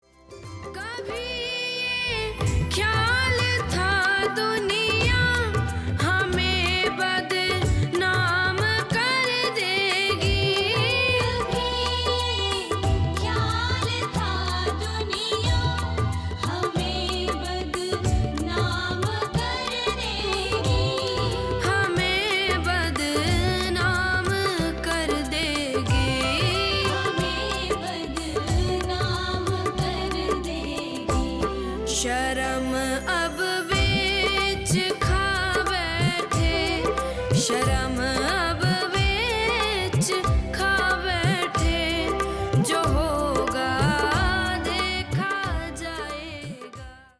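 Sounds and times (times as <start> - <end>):
bhajan devotional song: 0.2 - 47.1.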